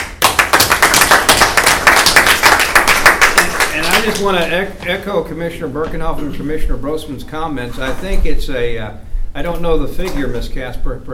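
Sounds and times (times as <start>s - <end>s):
audience applause: 0.0s - 4.3s
speech: 4.0s - 11.1s.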